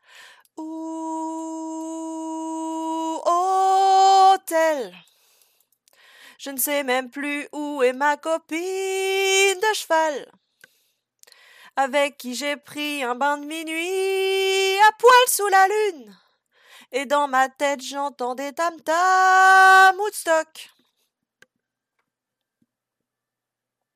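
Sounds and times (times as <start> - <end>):
soprano singing: 0.6 - 5.0, 6.4 - 10.3, 11.8 - 16.2, 16.9 - 20.7.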